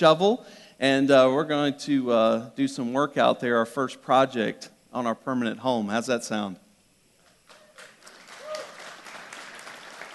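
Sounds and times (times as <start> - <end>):
speech: 0.0 - 6.6
crowd clapping: 7.2 - 10.1
faint cheer: 7.5 - 9.2.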